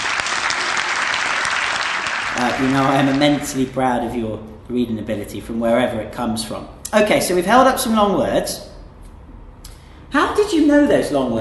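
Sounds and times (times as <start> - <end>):
round of applause: 0.0 - 3.6
speech: 2.4 - 8.7, 10.1 - 11.3.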